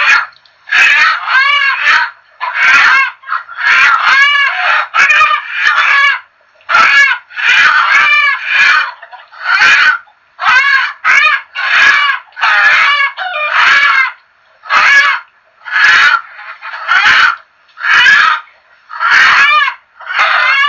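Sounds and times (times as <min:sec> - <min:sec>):
chickens clucking: 0:00.0 - 0:20.6.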